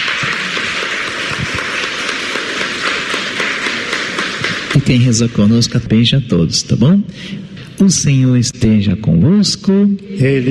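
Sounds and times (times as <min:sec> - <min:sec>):
audience applause: 0:00.0 - 0:05.8
speech: 0:04.8 - 0:10.4.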